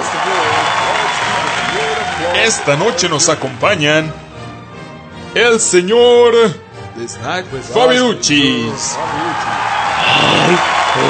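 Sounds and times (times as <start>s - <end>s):
audience clapping: 0.0s - 4.1s, 8.7s - 11.0s
speech: 2.4s - 4.2s, 5.3s - 11.0s.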